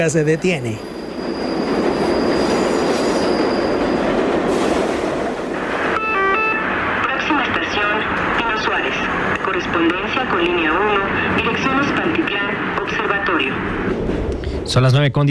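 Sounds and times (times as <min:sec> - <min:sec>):
speech: 0:00.0 - 0:01.6, 0:09.8 - 0:14.1, 0:14.7 - 0:15.2
Mexico City metro train running underground: 0:00.0 - 0:15.2
Mexico City metro train wheels squealing: 0:00.2 - 0:04.8.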